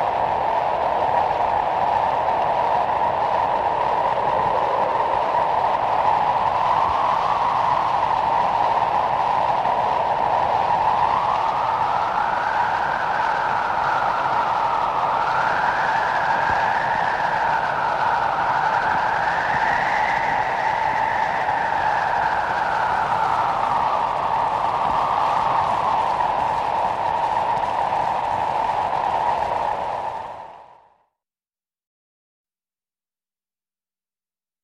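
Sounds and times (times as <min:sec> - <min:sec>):
wind: 0:00.0 - 0:30.9.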